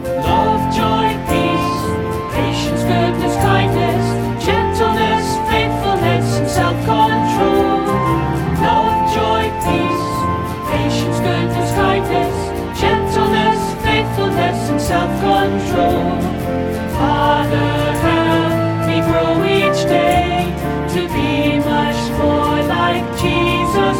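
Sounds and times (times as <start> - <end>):
full vocals: 0.1 - 23.9.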